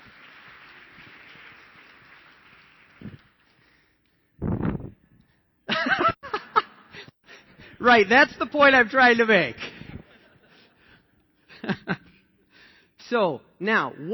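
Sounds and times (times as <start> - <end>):
audience applause: 0.0 - 3.8
laughter: 5.7 - 7.1, 9.6 - 12.2
speech: 7.8 - 9.6, 13.1 - 14.1.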